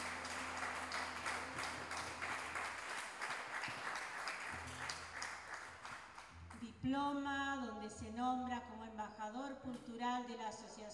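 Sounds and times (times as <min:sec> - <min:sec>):
audience applause: 0:00.0 - 0:06.3
speech: 0:06.8 - 0:10.9.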